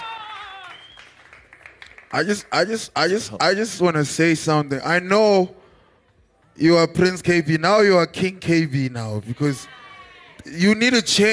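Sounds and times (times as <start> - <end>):
round of applause: 0.0 - 2.5
speech: 2.1 - 5.6, 6.6 - 9.8, 10.4 - 11.3.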